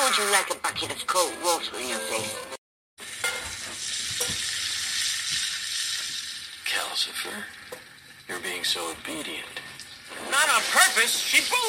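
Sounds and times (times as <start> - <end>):
speech: 0.2 - 2.6, 7.0 - 7.7, 8.3 - 11.6
food frying in a hot pan: 3.0 - 11.6.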